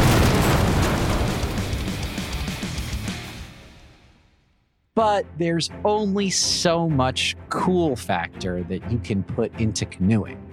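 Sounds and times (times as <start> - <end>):
explosion with rumbling crackling roar: 0.0 - 2.5
speech: 5.0 - 10.5.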